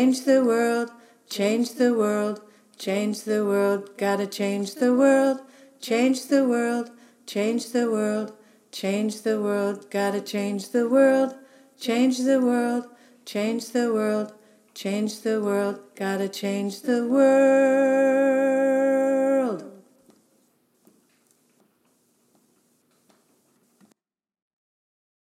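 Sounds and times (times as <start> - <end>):
alto lead voice in a choir: 0.0 - 20.0.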